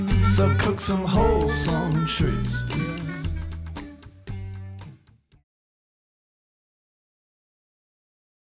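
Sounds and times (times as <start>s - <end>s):
blues music: 0.0s - 5.2s.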